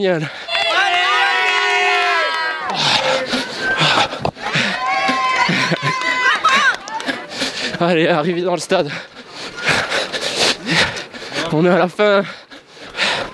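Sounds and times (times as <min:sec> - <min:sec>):
speech: 0:00.0 - 0:00.5, 0:07.8 - 0:09.2, 0:11.5 - 0:12.4
spectators cheering runners along a race course: 0:00.3 - 0:07.7
laughter: 0:01.9 - 0:13.3.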